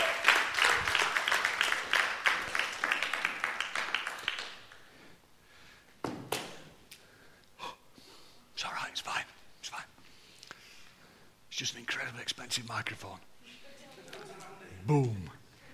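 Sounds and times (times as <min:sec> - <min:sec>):
audience round of applause: 0:00.0 - 0:04.8
speech: 0:11.6 - 0:13.3, 0:14.9 - 0:15.4.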